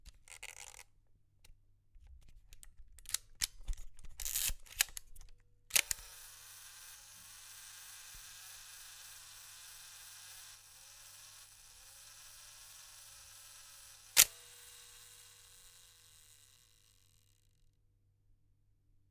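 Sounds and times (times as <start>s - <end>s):
old SLR film camera setting timer and taking photo: 4.2s - 5.1s, 5.7s - 17.2s.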